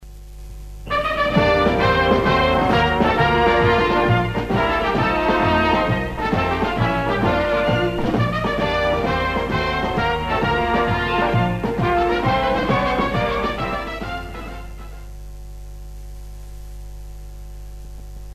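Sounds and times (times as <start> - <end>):
signature tune: 0.9 - 15.1.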